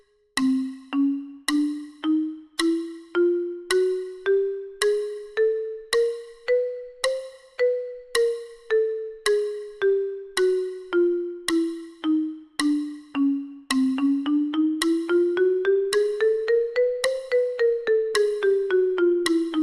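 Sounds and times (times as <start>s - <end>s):
mallet percussion: 0.0s - 19.6s.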